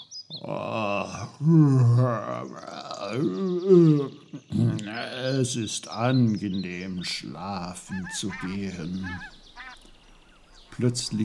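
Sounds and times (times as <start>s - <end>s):
person yawning loudly: 0.4s - 4.4s
speech: 1.4s - 4.4s, 5.0s - 9.4s, 10.8s - 11.2s.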